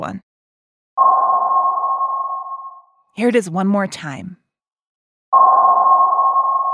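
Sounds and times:
speech: 0:00.0 - 0:00.2, 0:03.2 - 0:04.4
robot sonar ping: 0:01.0 - 0:03.0, 0:05.4 - 0:06.7.

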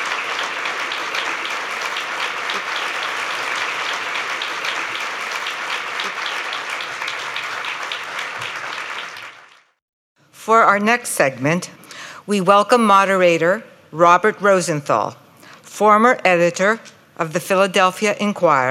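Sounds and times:
audience applauding panelists at a free-expression event: 0:00.0 - 0:09.8
speech: 0:10.5 - 0:15.2, 0:15.8 - 0:18.6.

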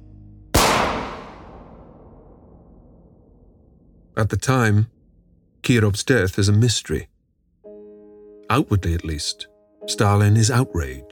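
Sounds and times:
pistol gunshot fired into a man's neck: 0:00.6 - 0:02.6
quiet low hum: 0:00.6 - 0:06.0
speech: 0:04.2 - 0:04.9, 0:05.6 - 0:07.1, 0:08.5 - 0:11.1.

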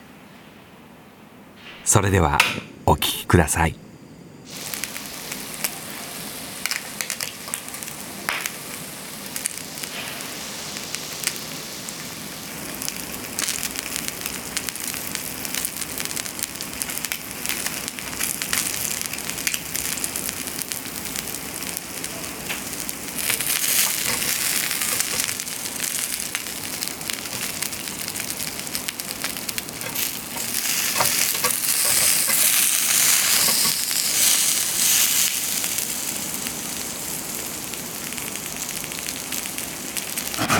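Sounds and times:
speech: 0:01.8 - 0:03.8
fatty salmon sizzling on the grill: 0:04.5 - 0:40.4.

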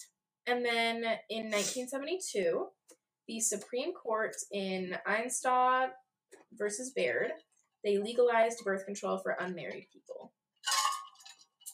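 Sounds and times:
speech: 0:00.0 - 0:10.8
glass clinking while taking a drink: 0:10.6 - 0:11.4.

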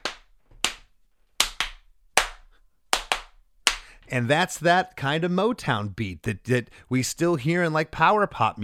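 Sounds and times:
hand claps in a song's pre-chorus: 0:00.0 - 0:03.9
speech: 0:04.1 - 0:08.6.

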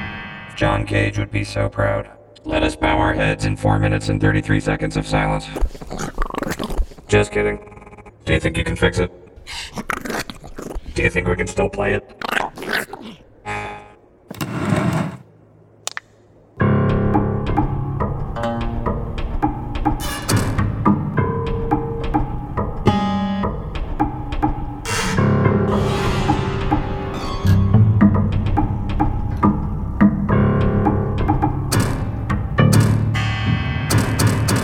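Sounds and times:
speech: 0:00.6 - 0:10.2, 0:11.0 - 0:13.3
piano notes: 0:16.6 - 0:34.6.

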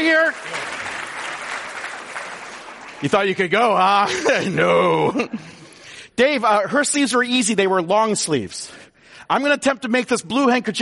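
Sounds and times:
speech: 0:00.0 - 0:00.7, 0:03.0 - 0:05.6, 0:06.2 - 0:10.8
audience applause: 0:00.0 - 0:03.8
laughter: 0:03.9 - 0:05.7.

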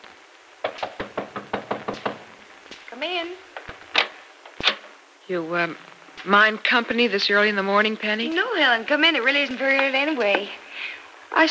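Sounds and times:
knocks on a bedroom door: 0:00.6 - 0:02.3
speech: 0:03.0 - 0:03.5, 0:05.3 - 0:11.5.

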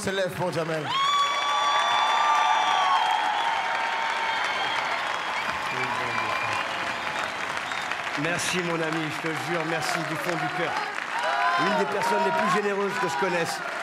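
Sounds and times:
speech: 0:00.0 - 0:01.2, 0:08.2 - 0:10.9, 0:11.6 - 0:13.8
large audience clapping: 0:00.0 - 0:13.8
whistles: 0:02.6 - 0:08.2.

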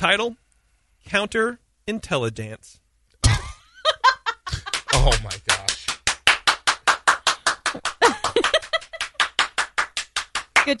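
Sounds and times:
speech: 0:00.0 - 0:00.4, 0:01.0 - 0:02.8, 0:05.0 - 0:05.7
laughter: 0:03.2 - 0:05.7, 0:07.7 - 0:09.2
one person clapping: 0:04.5 - 0:10.7.

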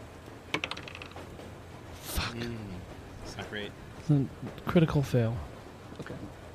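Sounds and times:
dice clattering across a hard surface: 0:00.5 - 0:01.2
speech: 0:02.3 - 0:06.4.

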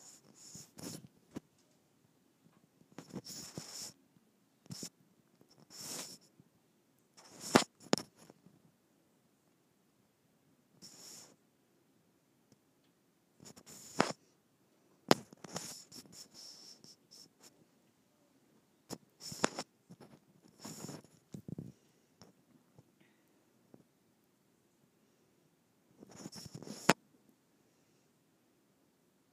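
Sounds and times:
microphone rubbing on skin: 0:00.0 - 0:01.4, 0:02.9 - 0:04.0, 0:04.7 - 0:06.3, 0:07.2 - 0:08.4, 0:10.8 - 0:11.4, 0:13.4 - 0:14.2, 0:15.1 - 0:17.5, 0:18.9 - 0:22.4, 0:26.0 - 0:27.0.

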